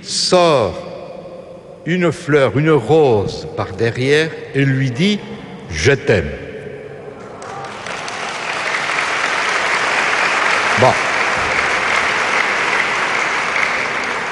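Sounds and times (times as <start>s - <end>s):
speech: 0.0s - 0.9s, 1.8s - 6.4s, 10.8s - 11.0s
audience applause: 7.3s - 14.2s.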